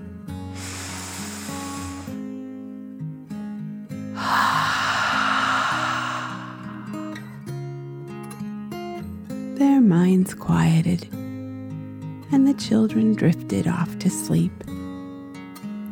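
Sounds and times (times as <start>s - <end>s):
slow deep breathing: 0.5s - 2.2s, 4.2s - 7.4s
speech: 9.8s - 11.2s, 12.3s - 14.7s.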